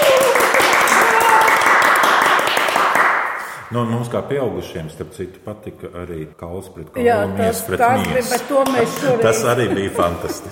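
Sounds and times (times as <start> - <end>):
audience applause congratulating prize winners on a show: 0.0 - 3.5
speech: 3.7 - 10.5
laughter: 8.7 - 10.5.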